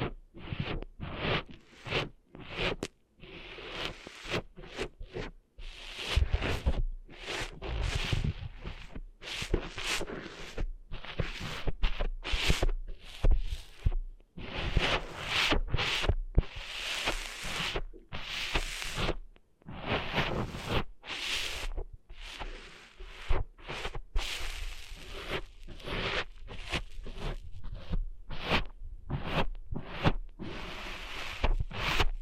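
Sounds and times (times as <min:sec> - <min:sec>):
sand cleaned out of an ear with scratching and rubbing: 0:00.4 - 0:32.1.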